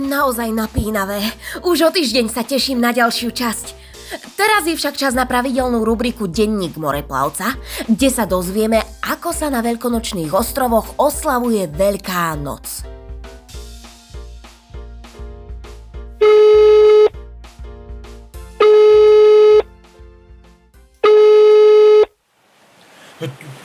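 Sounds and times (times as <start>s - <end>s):
speech: 0.0s - 13.0s
rhythmic musical backing: 0.0s - 20.7s
telephone ringing: 16.2s - 17.1s, 18.6s - 19.7s, 21.0s - 22.1s.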